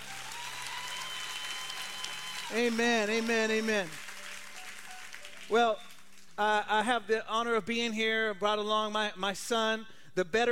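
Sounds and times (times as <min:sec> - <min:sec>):
audience applause: 0:00.0 - 0:06.1
speech: 0:02.5 - 0:04.1, 0:05.5 - 0:10.5.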